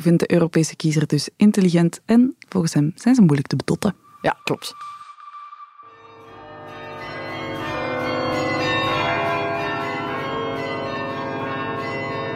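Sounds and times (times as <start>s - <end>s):
speech: 0.0s - 5.0s
church bells ringing in de Kempen: 5.8s - 12.3s.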